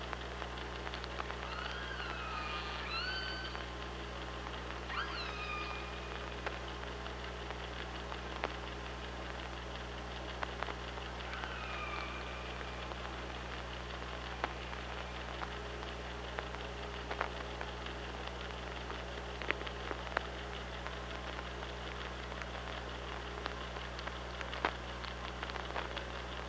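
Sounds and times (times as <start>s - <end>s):
constant low hum: 0.0s - 26.4s
sharp clicks: 0.0s - 26.4s
killer whale pulsed calls: 1.3s - 3.8s, 4.7s - 6.6s, 11.1s - 15.5s.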